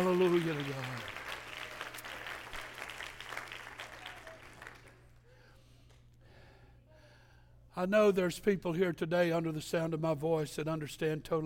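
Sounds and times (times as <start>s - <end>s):
speech: 0.0s - 1.1s, 7.8s - 11.4s
audience clapping hands: 0.0s - 5.2s.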